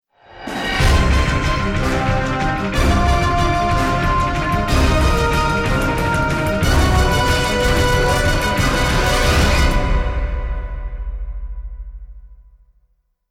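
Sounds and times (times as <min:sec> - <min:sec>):
music: 0:00.0 - 0:13.2.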